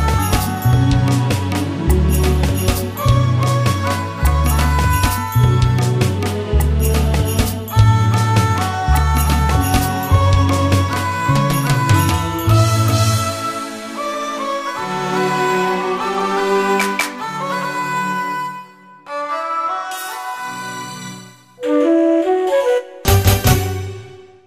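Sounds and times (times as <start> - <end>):
bansuri flute: 0.0 - 2.0, 2.9 - 6.6, 7.7 - 24.2
sarangi: 0.0 - 21.0.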